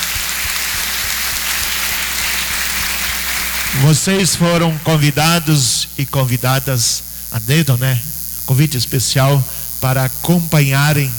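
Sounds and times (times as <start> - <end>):
applause: 0.0 - 5.1
speech: 3.8 - 11.1.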